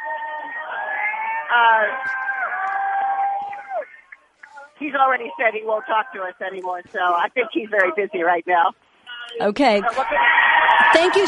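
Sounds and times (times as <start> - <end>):
crowd of protesters cheering outdoors: 0.0 - 4.6, 9.8 - 11.2
speech: 1.5 - 2.3, 4.8 - 11.2.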